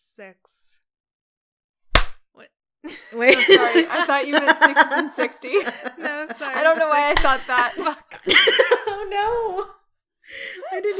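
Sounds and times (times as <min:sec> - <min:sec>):
speech: 0:00.2 - 0:00.7, 0:02.4 - 0:10.9
loud sharp hand clap: 0:02.0 - 0:02.2, 0:07.1 - 0:07.6
laughter: 0:02.9 - 0:09.7, 0:10.4 - 0:10.9.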